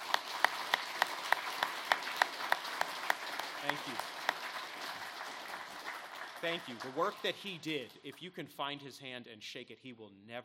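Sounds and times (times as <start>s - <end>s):
audience applause: 0.0s - 7.6s
speech: 3.7s - 4.1s, 6.4s - 10.4s.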